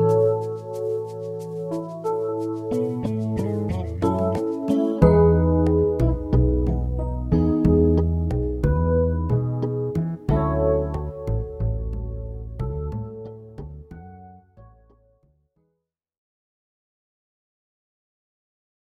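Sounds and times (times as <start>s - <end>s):
lounge bossa nova music: 0.0s - 14.2s.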